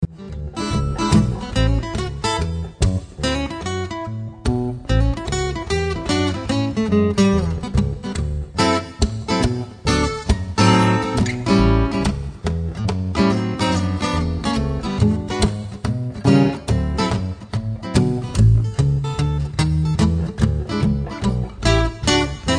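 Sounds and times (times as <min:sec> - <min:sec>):
swing music: 0:00.0 - 0:22.5.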